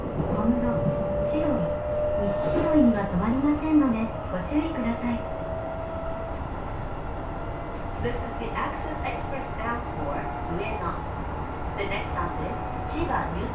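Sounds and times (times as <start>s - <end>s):
Keisei 3050 train: 0.0s - 13.5s.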